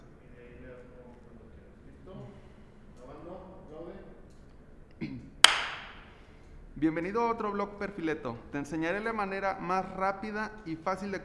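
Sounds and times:
hand clap: 5.4 - 6.3
speech: 6.8 - 11.2.

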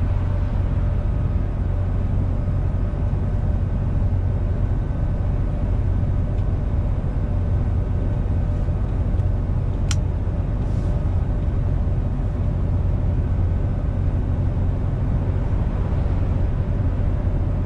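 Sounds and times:
truck engine droning: 0.0 - 17.6
sharp click: 9.9 - 10.1.

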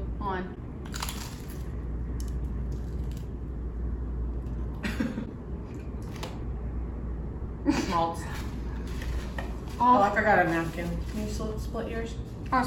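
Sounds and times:
low hum: 0.0 - 12.6
speech: 0.3 - 0.6, 7.7 - 8.4, 9.8 - 12.6
biting into a crunchy pastry: 0.8 - 3.5.

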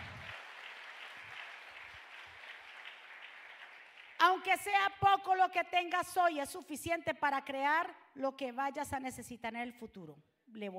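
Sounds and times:
audience applause: 0.0 - 4.2
speech: 4.2 - 10.7.

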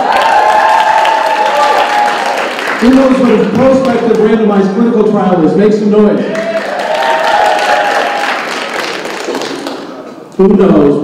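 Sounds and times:
high-pitched whoops: 0.0 - 2.4, 6.3 - 8.4
crowd cheering and clapping: 0.0 - 4.5, 6.2 - 10.3
speech: 2.8 - 6.5, 10.4 - 11.0.

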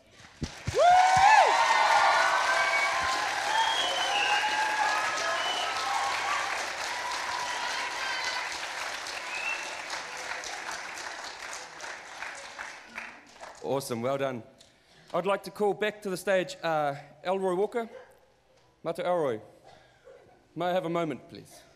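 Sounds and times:
audience applause: 0.0 - 13.6
speech: 13.8 - 18.0, 18.8 - 19.5, 20.6 - 21.7.

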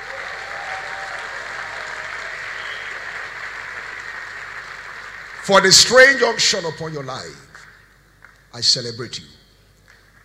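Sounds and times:
audience clapping hands: 0.0 - 6.7, 9.8 - 10.2
speech: 5.5 - 7.5, 8.6 - 9.4.

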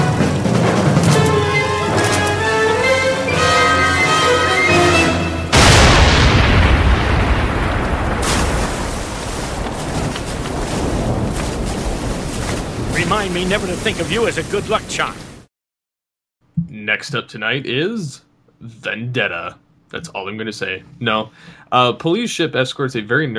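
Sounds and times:
rumbling roar of debris and fire: 0.0 - 3.3, 5.5 - 15.4
tense orchestral music: 0.0 - 6.0
bomb exploding on a boat: 5.4 - 15.4
speech: 13.4 - 15.3, 16.8 - 23.3.

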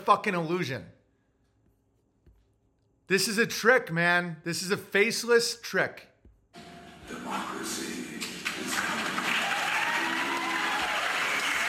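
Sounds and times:
speech: 0.0 - 1.0, 3.1 - 8.0
audience clapping along: 8.1 - 11.6.

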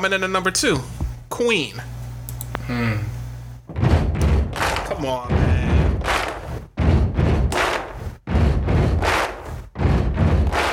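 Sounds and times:
speech: 0.0 - 2.0, 2.7 - 3.1, 5.0 - 5.5
heavy foot stomps: 3.7 - 10.7
hands clapping: 6.0 - 6.6, 7.5 - 8.0, 9.0 - 9.6.

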